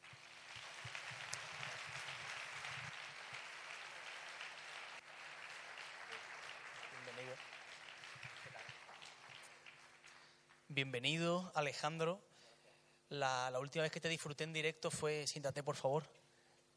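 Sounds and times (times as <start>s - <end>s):
large audience applause welcoming a guitarist: 0.0s - 10.6s
speech: 10.8s - 12.3s, 13.1s - 16.2s.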